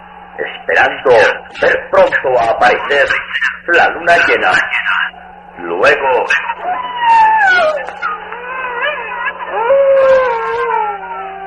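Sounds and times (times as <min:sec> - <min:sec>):
long wavering howl: 0:00.0 - 0:03.2, 0:04.1 - 0:11.4
steady low hum: 0:00.0 - 0:11.4
speech: 0:00.7 - 0:08.3.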